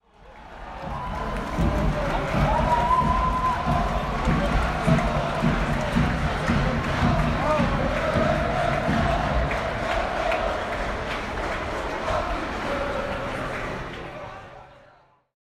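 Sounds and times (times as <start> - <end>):
large crowd cheering: 0.0 - 15.0.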